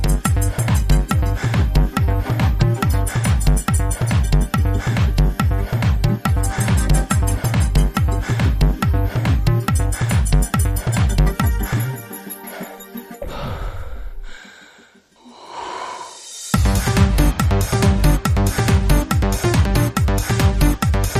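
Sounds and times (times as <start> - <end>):
drummer playing drums: 0.0 - 11.6, 16.6 - 21.0.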